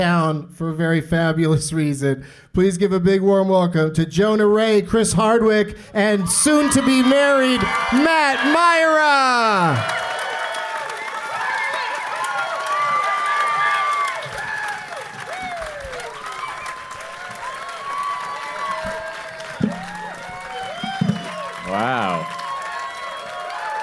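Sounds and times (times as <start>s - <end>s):
speech: 0.0s - 10.0s
audience shouts and whistles: 6.0s - 23.8s
standing audience applause at a live show in downtown Vegas: 6.1s - 23.8s.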